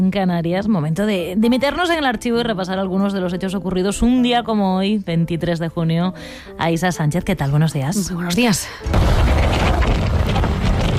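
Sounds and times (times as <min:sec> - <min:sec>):
speech: 0:00.0 - 0:10.0
wind sound effect: 0:08.9 - 0:10.9.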